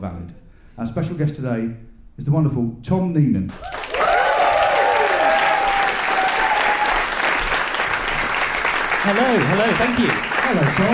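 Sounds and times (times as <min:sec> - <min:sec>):
speech: 0:00.0 - 0:03.8, 0:09.0 - 0:10.9
audience whoops and cheers: 0:03.5 - 0:07.9
live audience applause: 0:03.5 - 0:10.9.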